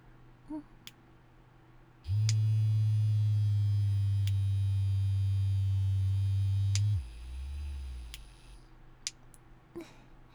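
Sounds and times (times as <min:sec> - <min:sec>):
vibrator toy buzzing: 0:02.1 - 0:08.6
faint clicks: 0:02.1 - 0:09.4.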